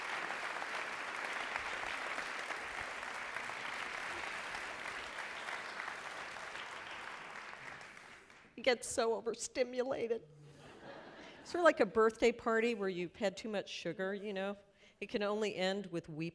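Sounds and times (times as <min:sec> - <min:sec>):
audience applause welcoming a guest at a Northern Michigan show: 0:00.0 - 0:08.4
speech: 0:08.6 - 0:10.4, 0:11.5 - 0:16.3.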